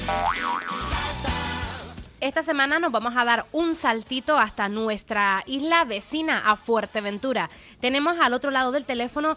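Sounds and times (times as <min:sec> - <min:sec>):
springy cartoon boing jingle: 0:00.1 - 0:01.0
speech: 0:02.2 - 0:09.3.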